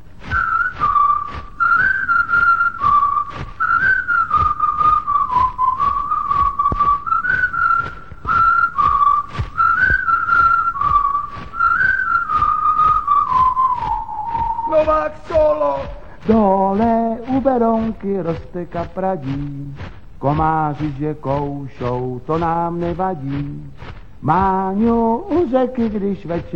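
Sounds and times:
strummed rhythmic beat: 0.0s - 26.5s
people whistling a bouncy tune in unison: 0.2s - 26.5s
speech: 18.0s - 26.5s.

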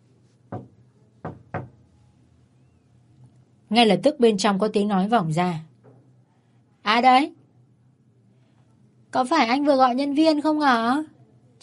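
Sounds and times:
woman knocking on a hotel room door: 0.5s - 1.8s
speech: 3.7s - 5.7s, 6.9s - 7.4s, 9.1s - 11.6s.

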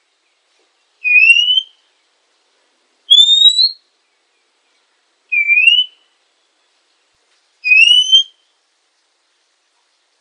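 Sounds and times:
female Oriental magpie-robin whistled notes: 1.0s - 1.8s, 3.1s - 3.8s, 5.3s - 6.0s, 7.6s - 8.4s.

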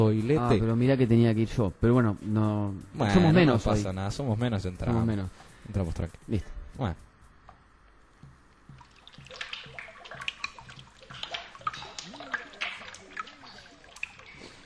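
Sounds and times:
speech: 0.0s - 7.1s
shower water running as someone washes their hair: 8.6s - 14.6s.

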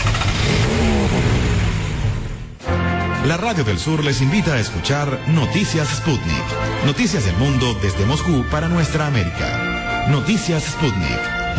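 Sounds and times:
engine starting and revving: 0.0s - 2.6s
speech: 3.2s - 11.5s.

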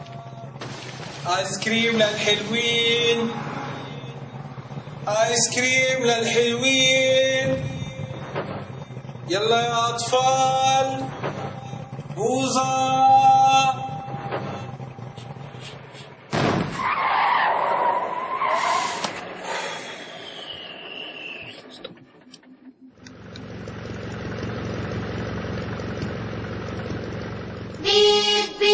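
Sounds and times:
ice cream truck engine revving and roaring: 0.0s - 28.7s
bursting skid-like noise: 0.4s - 22.9s
speech: 1.2s - 3.6s, 5.1s - 7.7s, 9.3s - 11.2s, 12.2s - 13.8s.

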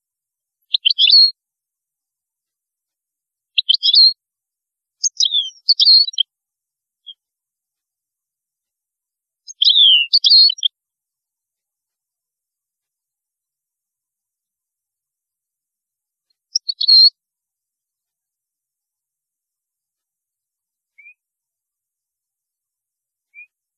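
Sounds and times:
European goldfinch song with tinkling chirps: 0.8s - 1.3s, 3.6s - 4.2s, 5.0s - 6.2s, 9.5s - 10.7s, 16.5s - 17.2s.

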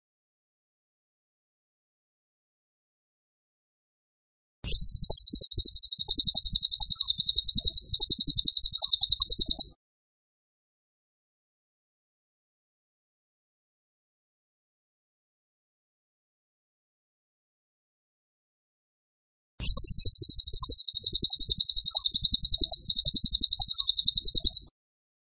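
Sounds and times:
bird buzzy song: 4.7s - 9.8s, 19.6s - 24.7s.

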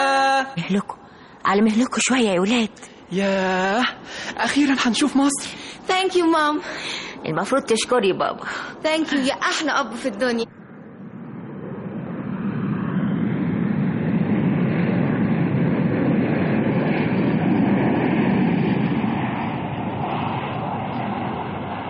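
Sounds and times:
speech: 0.5s - 10.6s
airliner cabin roar during a flight over the Western Desert: 8.1s - 21.8s.

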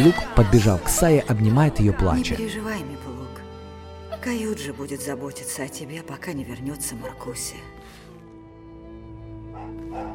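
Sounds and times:
speech: 0.0s - 3.0s, 4.2s - 8.0s
sled dogs barking: 9.5s - 10.1s.

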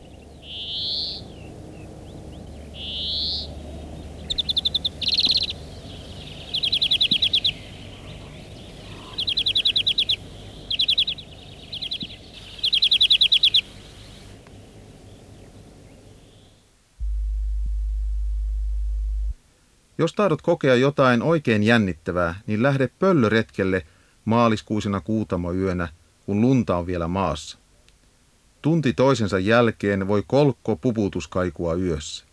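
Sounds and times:
greenfinch song with wheezing and canary-like trills: 0.0s - 19.4s
speech: 20.0s - 27.6s, 28.6s - 32.3s.

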